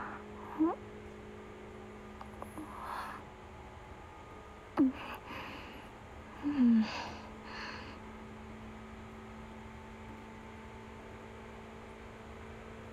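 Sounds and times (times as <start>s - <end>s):
Seibu New 2000 series train interior: 2.2s - 8.3s.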